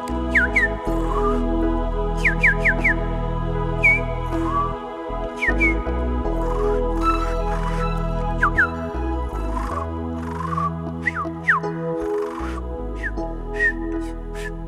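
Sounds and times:
steady low musical hum: 0.0s - 14.6s
person whistling a bird's song: 0.3s - 1.4s, 2.2s - 3.0s, 3.8s - 4.8s, 5.4s - 5.9s, 7.2s - 8.8s, 9.5s - 14.6s.

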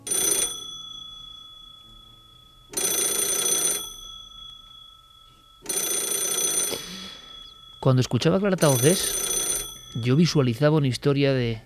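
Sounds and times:
old landline telephone bell ringing: 0.0s - 10.4s
speech: 7.8s - 9.3s, 10.0s - 11.6s.

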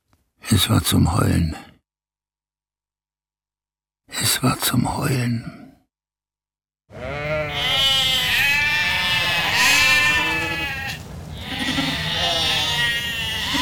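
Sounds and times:
speech: 0.6s - 1.7s, 4.4s - 5.6s
hungry lambs bleating insistently: 6.9s - 13.6s.

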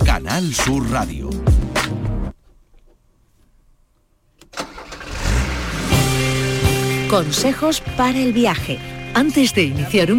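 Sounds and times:
speech: 0.2s - 1.5s, 7.1s - 10.1s
car engine starting: 4.4s - 10.1s.

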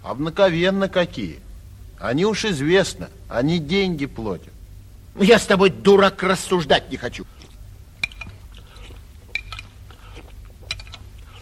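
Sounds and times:
speech: 0.0s - 1.4s, 2.0s - 4.6s, 5.2s - 7.4s
faint low hum: 0.0s - 11.4s
dishes clinking as soup is served: 8.0s - 8.5s, 9.3s - 9.8s, 10.6s - 11.0s.

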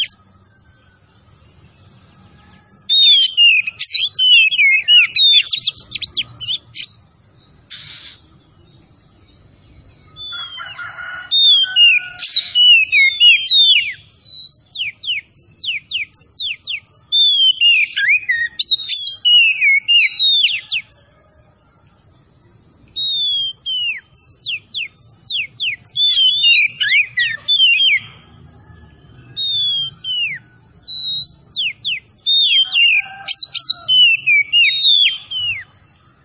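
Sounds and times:
Oriental magpie-robin singing whistled phrases: 2.8s - 7.0s, 11.4s - 21.1s, 22.9s - 28.2s, 29.4s - 35.7s.

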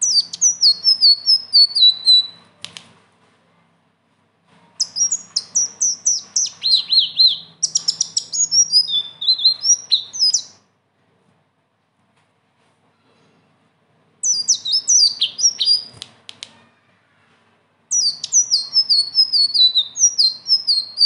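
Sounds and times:
leafbird singing: 0.0s - 2.4s, 4.8s - 10.6s, 14.2s - 16.0s, 17.9s - 21.0s.

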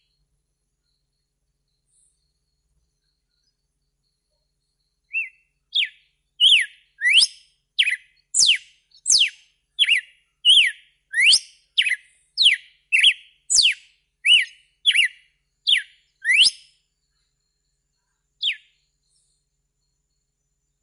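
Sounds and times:
red-cowled cardinal whistled song: 5.0s - 16.8s, 18.4s - 20.4s.

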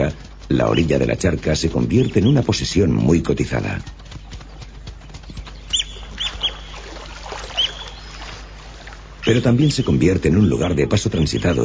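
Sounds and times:
low steady outdoor rumble: 0.0s - 11.6s
speech: 0.1s - 4.0s, 9.2s - 11.6s
small white plover calling: 5.6s - 11.6s.

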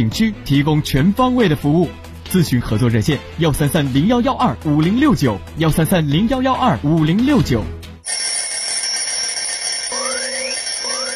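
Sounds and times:
speech: 0.0s - 7.8s
alarm clock ringing: 8.0s - 11.1s.

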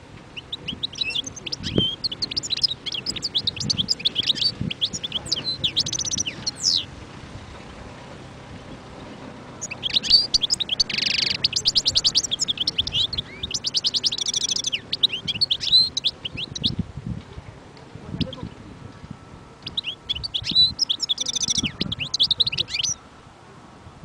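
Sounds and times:
European goldfinch singing: 0.3s - 6.9s, 9.5s - 16.8s, 19.5s - 23.0s.

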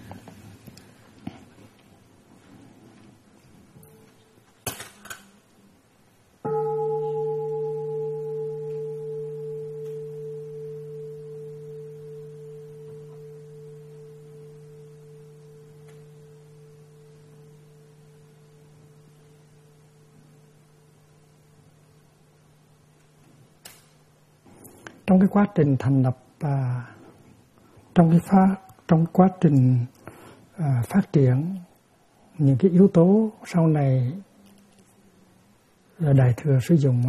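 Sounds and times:
meditation bell ringing: 6.5s - 20.3s
speech: 25.1s - 27.0s, 28.0s - 30.0s, 30.6s - 31.6s, 32.4s - 34.3s, 36.0s - 37.0s.

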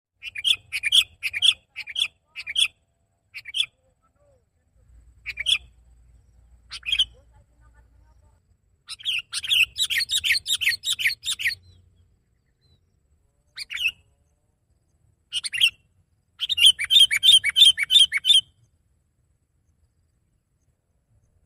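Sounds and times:
sooty-headed bulbul singing: 0.2s - 3.8s, 5.0s - 14.2s, 14.9s - 18.8s.

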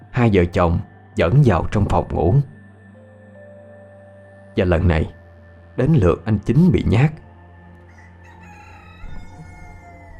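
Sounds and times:
speech: 0.2s - 2.5s, 4.6s - 5.2s, 5.8s - 7.2s
rooster crowing near dawn: 7.8s - 10.1s.

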